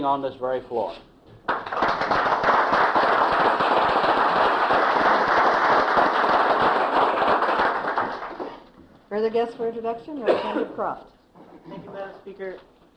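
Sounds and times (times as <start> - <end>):
speech: 0.0 - 2.8, 9.2 - 11.2, 12.2 - 12.7
audience applause in a legislative chamber welcoming sixth grade students: 1.4 - 8.7.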